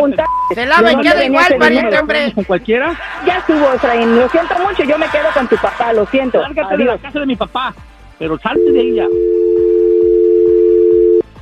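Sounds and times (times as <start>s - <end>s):
speech: 0.0s - 9.4s
laughter: 2.8s - 7.1s
telephone tone after the caller hung up: 8.6s - 11.2s.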